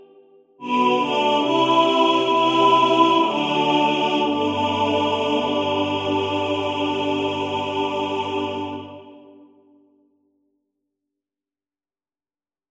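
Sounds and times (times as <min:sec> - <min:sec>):
first tenor singing in the foreground of a male choir: 0:00.6 - 0:09.4.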